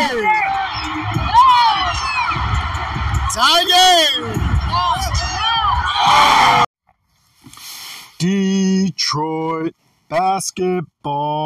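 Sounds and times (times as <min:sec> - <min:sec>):
basketball arena crowd cheering: 0:00.0 - 0:06.7
speech: 0:09.1 - 0:09.3, 0:10.1 - 0:11.4.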